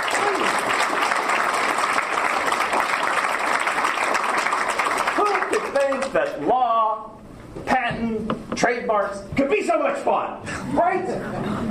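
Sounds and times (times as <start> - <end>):
faint whoop or cheer: 0.0 - 0.6
audience applause: 0.0 - 6.4
speech: 0.3 - 0.8, 5.9 - 7.1, 7.9 - 11.7
laughter: 10.5 - 11.7.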